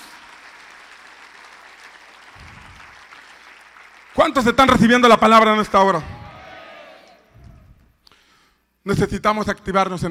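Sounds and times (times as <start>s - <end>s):
audience applauding: 0.0s - 4.8s
speech: 4.2s - 6.2s, 8.9s - 10.0s.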